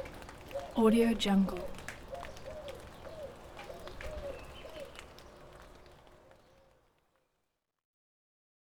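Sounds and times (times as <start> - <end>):
subtle birds: 0.0 - 6.8
rain: 0.0 - 7.8.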